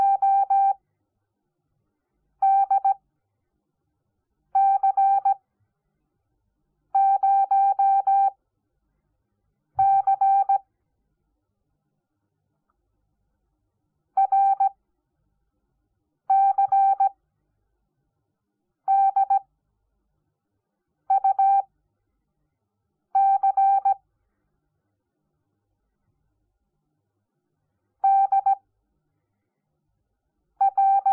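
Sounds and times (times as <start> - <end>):
morse code beeps: 0.0 - 0.8, 2.4 - 3.0, 4.6 - 5.4, 7.0 - 8.3, 9.8 - 10.6, 14.2 - 14.7, 16.3 - 17.1, 18.9 - 19.4, 21.1 - 21.6, 23.2 - 24.0, 28.0 - 28.6, 30.6 - 31.1.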